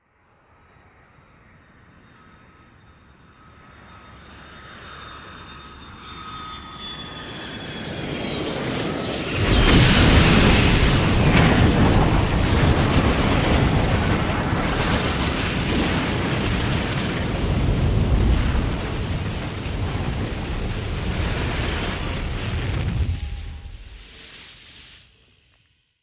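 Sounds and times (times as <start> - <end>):
airplane falling at an angle and breaking apart on the ground: 9.2 - 24.0.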